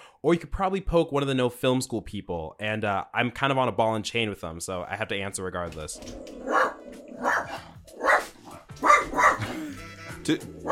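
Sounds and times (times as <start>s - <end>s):
speech: 0.2s - 6.6s, 10.3s - 10.7s
dog barking: 6.4s - 9.6s.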